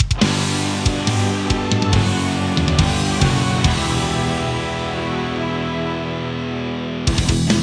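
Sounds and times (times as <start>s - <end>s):
failing fanfare: 0.2s - 7.5s.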